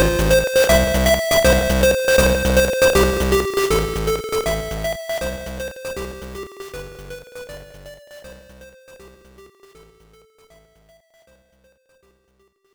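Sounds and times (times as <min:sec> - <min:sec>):
level game music: 0:00.0 - 0:05.0.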